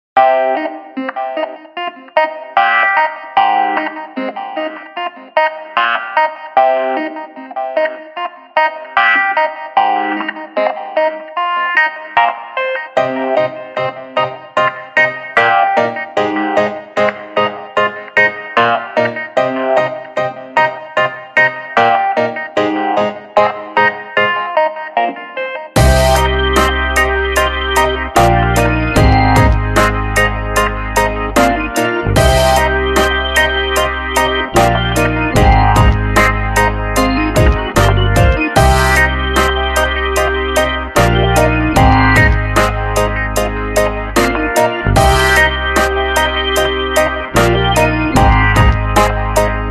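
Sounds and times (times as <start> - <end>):
chill beat music: 0.2 - 49.7.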